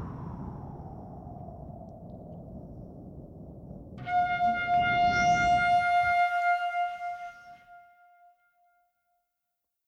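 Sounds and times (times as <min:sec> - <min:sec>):
vocal flute: 0:04.0 - 0:08.3.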